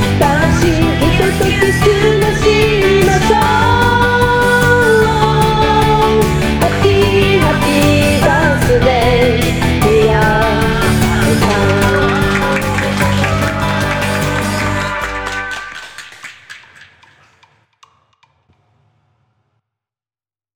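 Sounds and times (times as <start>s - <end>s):
birthday song: 0.2s - 16.0s.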